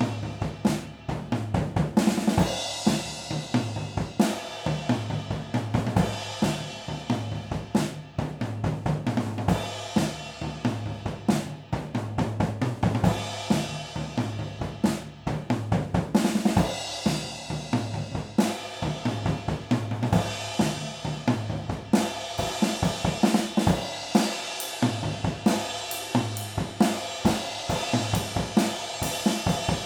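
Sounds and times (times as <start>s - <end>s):
drums recorded with stereo overhead microphones: 0.0s - 29.8s.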